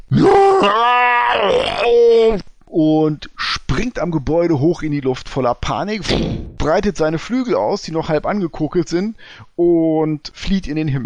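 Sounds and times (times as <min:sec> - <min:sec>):
voice imitating a dragon's scream: 0:00.0 - 0:02.4
speech: 0:01.5 - 0:11.0.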